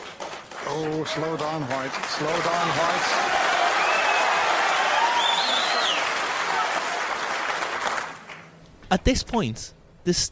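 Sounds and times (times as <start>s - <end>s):
snooker crowd applause during a maximum break: 0.0s - 8.5s
speech: 0.7s - 3.6s, 8.9s - 10.2s.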